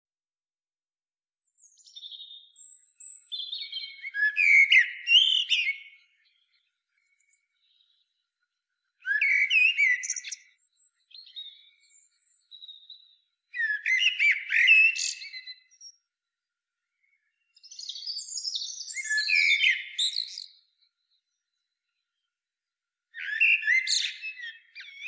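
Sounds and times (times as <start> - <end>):
common blackbird singing: 1.5 - 8.2, 9.0 - 16.0, 17.2 - 20.8, 23.2 - 25.0.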